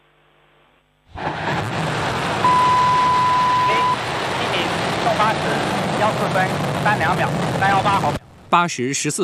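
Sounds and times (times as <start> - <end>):
Long March 7 Y-11 carrier rocket igniting and lifting off: 1.1 - 8.5
level tone: 2.4 - 4.6.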